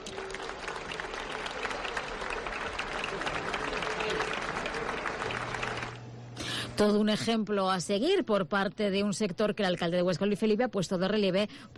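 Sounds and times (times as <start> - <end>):
crowd applauding: 0.0 - 6.1
speech: 6.8 - 11.7.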